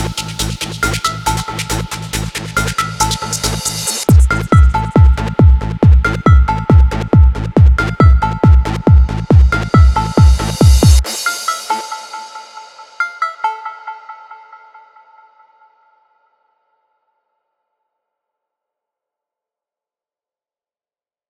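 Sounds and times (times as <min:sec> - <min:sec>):
JUP 8000 synthesizer: 0:00.0 - 0:16.4.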